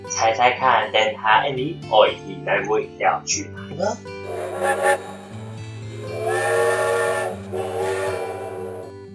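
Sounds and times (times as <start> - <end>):
speech: 0.0 - 5.1
steam train whistle: 4.2 - 9.1.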